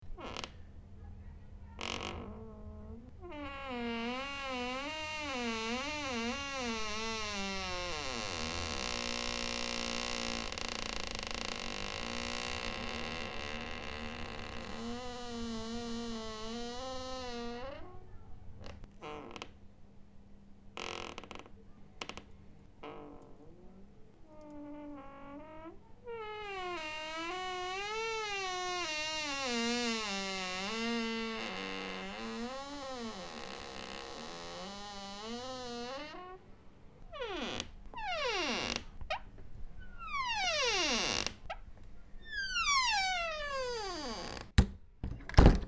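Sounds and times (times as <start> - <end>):
door creaking back and forth: 0.1 - 0.6, 1.8 - 19.6, 20.8 - 45.6.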